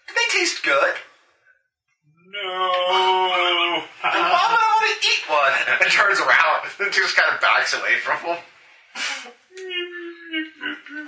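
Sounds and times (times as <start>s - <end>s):
speech: 0.4s - 1.1s, 4.1s - 9.1s
person imitating a whimper: 2.3s - 3.8s, 9.5s - 11.0s
laughter: 2.6s - 7.5s, 9.0s - 11.0s.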